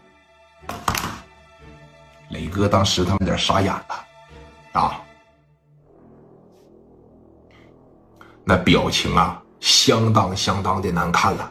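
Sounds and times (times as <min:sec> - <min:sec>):
telephone receiver slammed down: 0:00.7 - 0:01.2
speech: 0:02.3 - 0:04.1, 0:04.8 - 0:05.0, 0:08.5 - 0:11.4.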